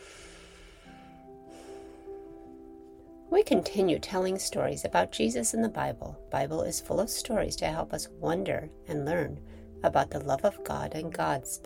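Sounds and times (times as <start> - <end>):
deep breath taken before a children's Bible story: 0.0 - 2.6, 9.4 - 9.8
quiet sustained music: 0.0 - 11.6
speech: 3.3 - 11.6.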